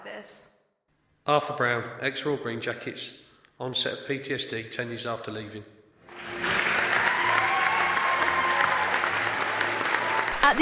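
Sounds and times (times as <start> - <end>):
speech: 0.2 - 0.5, 1.3 - 6.4, 10.4 - 10.6
audience standing ovation applause: 6.0 - 10.6.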